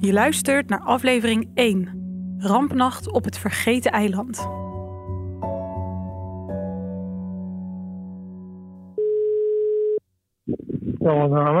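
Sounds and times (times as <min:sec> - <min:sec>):
speech: 0:00.0 - 0:04.6, 0:11.1 - 0:11.5
sustained musical chords: 0:00.0 - 0:08.9
telephone ringback tone on an outgoing call: 0:09.0 - 0:10.0.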